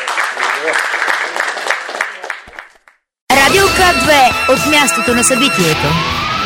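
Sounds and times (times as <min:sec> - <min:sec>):
audience applause at a public event: 0:00.0 - 0:03.0
speech: 0:00.6 - 0:01.5, 0:03.5 - 0:06.3.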